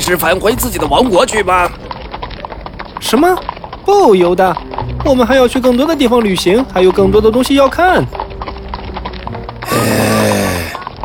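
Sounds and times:
horse hooves clip-clopping: 0:00.0 - 0:11.0
speech: 0:00.1 - 0:01.8, 0:03.0 - 0:08.2
loud drawn-out horse whinny: 0:09.6 - 0:10.9.

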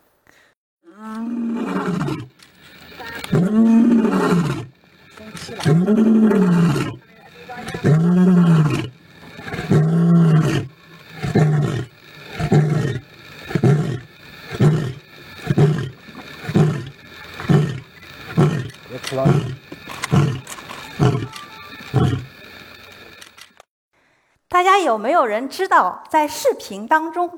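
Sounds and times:
male lion roaring: 0:01.0 - 0:22.5
speech: 0:05.6 - 0:06.6, 0:25.0 - 0:27.3.

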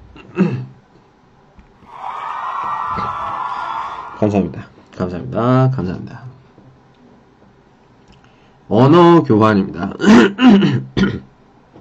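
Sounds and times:
audience applause: 0:01.9 - 0:04.4
speech: 0:04.2 - 0:06.3, 0:08.7 - 0:11.3.

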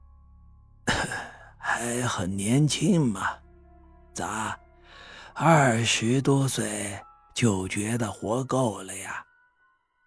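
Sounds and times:
old man coughing: 0:00.9 - 0:01.5
speech: 0:01.8 - 0:03.4, 0:04.2 - 0:04.6, 0:05.4 - 0:09.3.

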